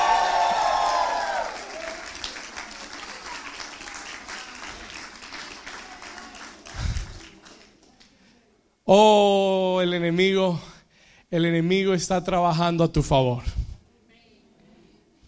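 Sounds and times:
audience shouting and cheering in victory: 0:00.0 - 0:02.3
audience applause: 0:00.0 - 0:07.7
speech: 0:08.9 - 0:10.7, 0:11.3 - 0:13.6.

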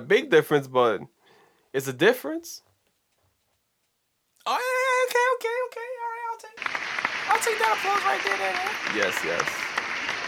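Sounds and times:
speech: 0:00.0 - 0:02.7, 0:04.4 - 0:06.6, 0:07.3 - 0:09.7
applause: 0:06.6 - 0:10.2.

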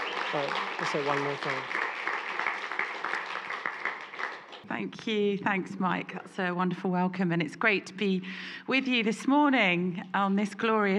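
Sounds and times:
audience round of applause: 0:00.0 - 0:04.7
speech: 0:00.3 - 0:01.8, 0:04.7 - 0:10.9.

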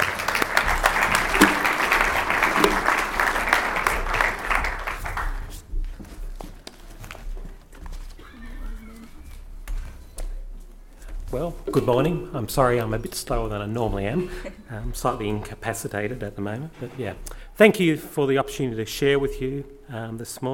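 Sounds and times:
audience applause: 0:00.0 - 0:05.7
speech: 0:11.8 - 0:20.5.

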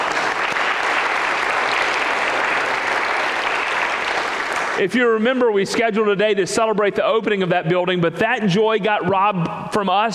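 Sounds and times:
audience applause: 0:00.0 - 0:04.8
speech: 0:04.8 - 0:10.1.

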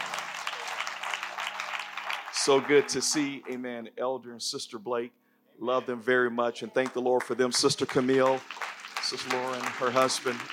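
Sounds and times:
audience clapping hands: 0:00.0 - 0:03.6, 0:06.8 - 0:10.5
speech: 0:02.4 - 0:10.5.

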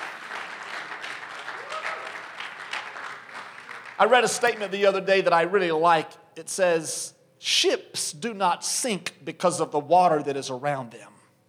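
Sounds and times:
audience clapping hands: 0:00.0 - 0:05.0
speech: 0:04.0 - 0:11.2.

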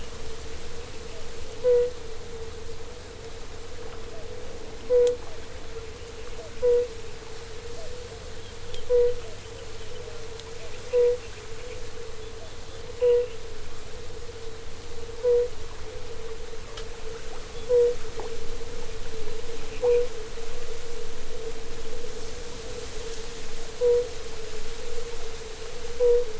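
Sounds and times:
steady mid-pitched hum: 0:00.0 - 0:23.2
birds voices: 0:04.9 - 0:13.5, 0:17.3 - 0:18.3.

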